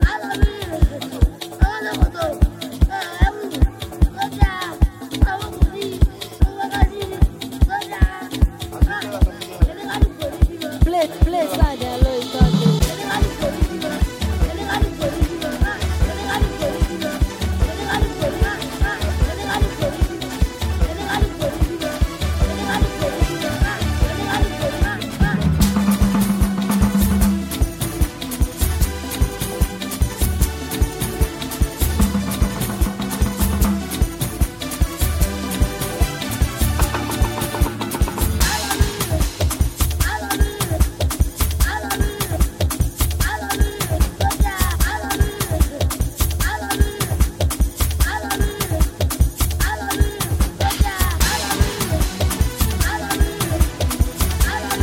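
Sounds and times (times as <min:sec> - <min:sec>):
cruise beat: 0:00.0 - 0:54.8.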